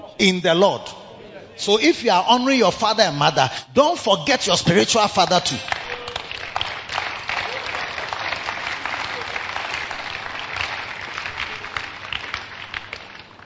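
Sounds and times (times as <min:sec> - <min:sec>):
speech: 0:00.1 - 0:01.0, 0:01.6 - 0:05.8
audience clapping: 0:05.2 - 0:13.4.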